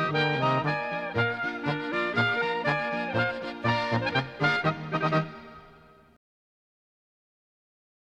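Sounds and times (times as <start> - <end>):
polka music: 0.0 - 6.2.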